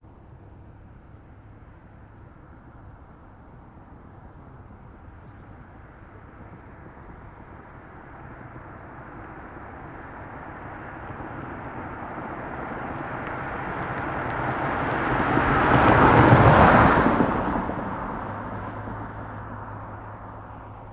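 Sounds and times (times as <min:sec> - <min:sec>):
car passing fast in a desert: 0:08.3 - 0:20.9.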